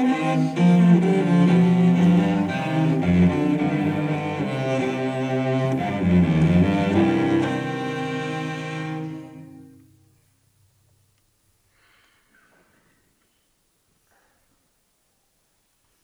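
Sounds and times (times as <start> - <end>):
cello suite: 0.0 - 10.1.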